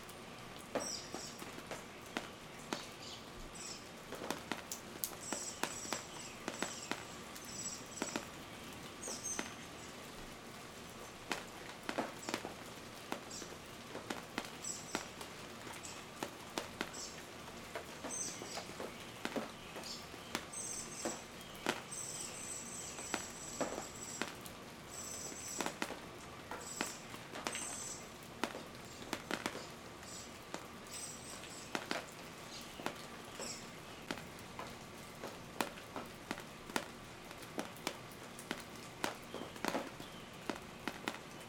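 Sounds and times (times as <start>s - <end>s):
rain dripping: 0.0s - 41.4s
birds: 0.8s - 10.2s, 14.5s - 25.9s, 26.5s - 35.4s, 38.3s - 41.4s.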